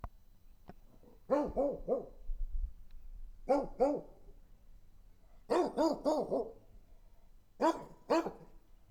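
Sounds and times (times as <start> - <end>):
dog barking: 1.3 - 2.2, 3.5 - 4.2, 5.5 - 6.6, 7.6 - 8.6
speech: 1.4 - 2.2, 3.5 - 4.1.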